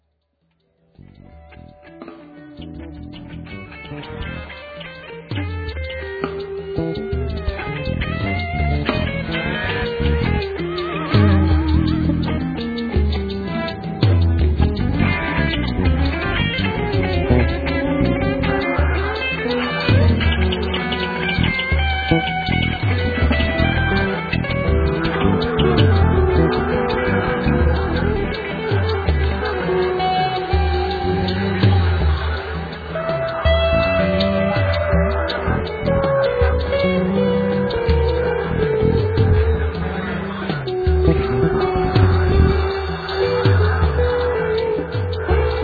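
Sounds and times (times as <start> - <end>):
pop music: 2.7 - 45.6.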